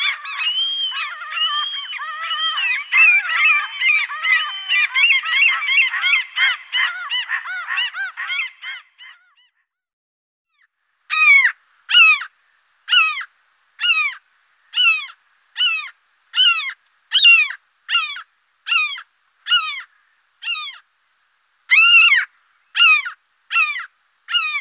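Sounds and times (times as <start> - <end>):
common gull mewing calls: 0.0 - 9.2, 11.1 - 12.3, 12.9 - 20.8, 21.7 - 24.6.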